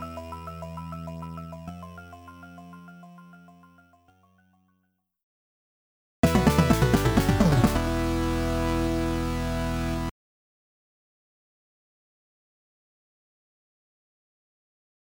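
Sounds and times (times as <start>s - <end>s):
video game continue and game over jingle: 6.3s - 10.1s.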